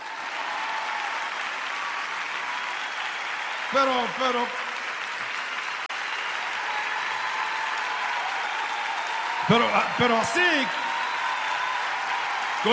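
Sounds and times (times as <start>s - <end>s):
audience applauding: 0.0s - 12.7s
speech: 3.7s - 4.6s, 9.5s - 10.8s.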